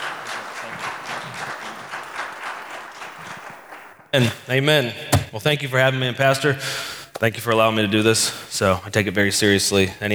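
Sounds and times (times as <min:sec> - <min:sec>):
church audience applauding to welcome a preacher: 0:00.0 - 0:04.1
speech: 0:04.1 - 0:10.1.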